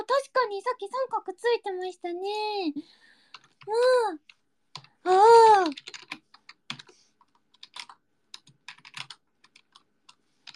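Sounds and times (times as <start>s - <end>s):
speech: 0.2s - 4.4s, 5.0s - 6.0s
fingers typing on a computer keyboard: 3.3s - 10.5s.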